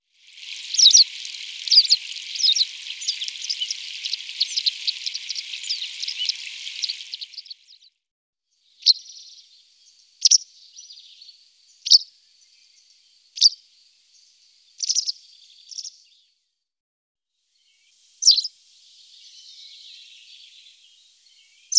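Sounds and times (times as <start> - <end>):
white wagtail calls: 0.0 - 7.8.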